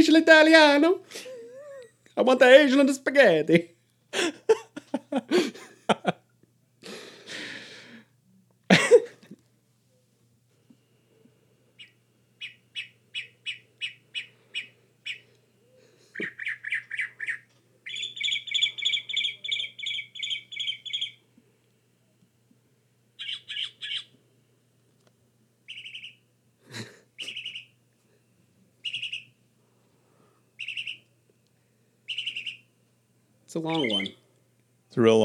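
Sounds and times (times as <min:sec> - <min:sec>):
speech: 0:00.0 - 0:01.3, 0:02.2 - 0:06.2, 0:33.6 - 0:34.2, 0:35.0 - 0:35.2
northern mockingbird singing: 0:11.8 - 0:15.3, 0:16.1 - 0:21.2, 0:23.2 - 0:24.2, 0:25.7 - 0:26.3, 0:27.2 - 0:27.8, 0:28.8 - 0:29.4, 0:30.6 - 0:31.1, 0:32.1 - 0:32.7, 0:33.6 - 0:34.2.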